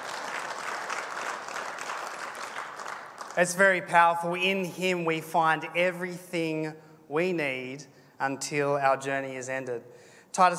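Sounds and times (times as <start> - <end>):
audience applause: 0.0 - 3.4
speech: 3.4 - 10.5.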